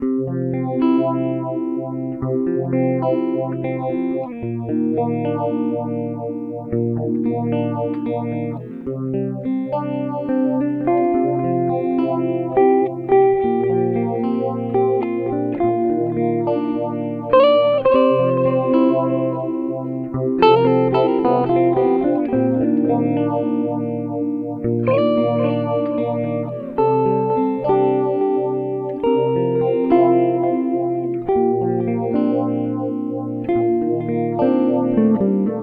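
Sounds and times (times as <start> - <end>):
mellow music: 0.4 - 35.6.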